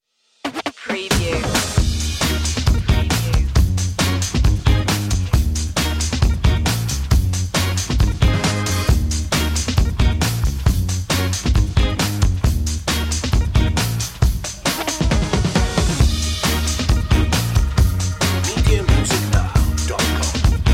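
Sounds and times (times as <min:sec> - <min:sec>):
funk music without horn or guitar: 0:00.4 - 0:20.7.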